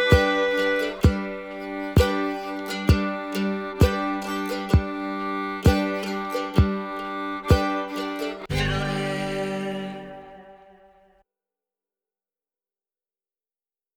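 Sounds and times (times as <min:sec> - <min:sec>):
fiddle playing practice loops: 0:00.0 - 0:10.6.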